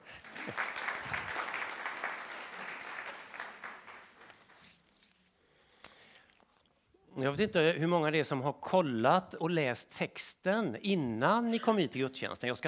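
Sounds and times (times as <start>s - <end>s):
audience applause: 0.0s - 4.6s
speech: 7.2s - 12.6s.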